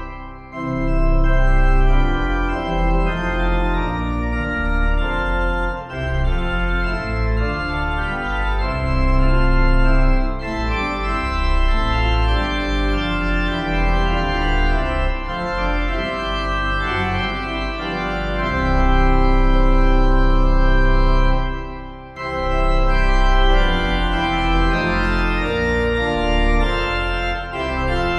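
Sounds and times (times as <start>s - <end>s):
organ playing a hymn: 0.0s - 28.1s.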